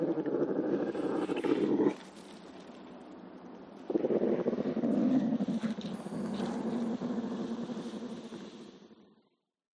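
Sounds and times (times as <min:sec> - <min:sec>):
lynx growling: 0:00.0 - 0:02.0, 0:03.9 - 0:08.7.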